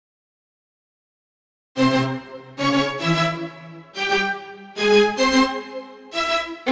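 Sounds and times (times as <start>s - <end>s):
gypsy orchestra playing: 1.8s - 6.6s.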